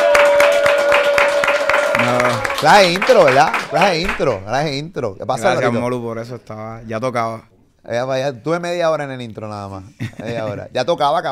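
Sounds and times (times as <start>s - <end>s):
applause welcoming a guest: 0.0s - 4.4s
speech: 2.6s - 11.3s.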